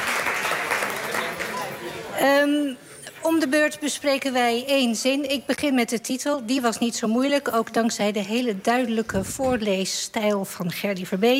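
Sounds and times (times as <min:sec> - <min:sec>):
applause: 0:00.0 - 0:02.1
speech: 0:02.2 - 0:11.3.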